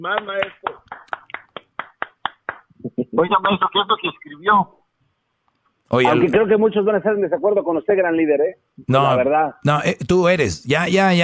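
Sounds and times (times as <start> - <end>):
speech: 0.0 - 0.8, 3.1 - 4.8, 5.9 - 11.2
clapping: 0.2 - 2.7.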